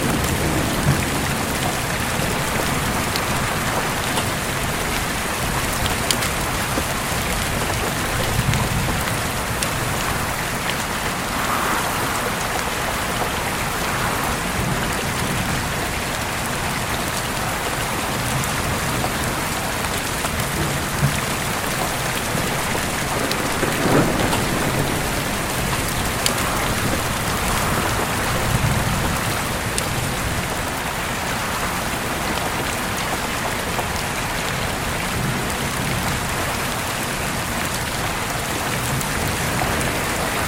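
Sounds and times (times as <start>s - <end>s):
thunder: 0.0s - 16.2s, 20.3s - 30.7s
howling wind: 0.0s - 40.4s
rain: 0.0s - 40.4s.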